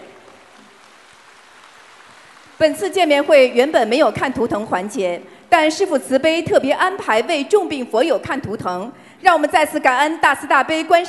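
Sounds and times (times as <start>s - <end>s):
warm applause: 0.0s - 3.3s
speech: 2.6s - 11.0s.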